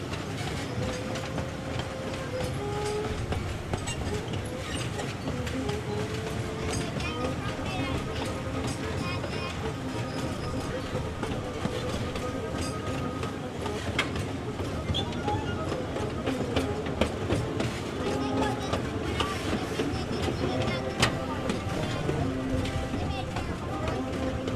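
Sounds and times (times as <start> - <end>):
1930s steam locomotive running: 0.0 - 24.5
wheels clattering: 0.0 - 24.5
people talking: 4.0 - 24.5.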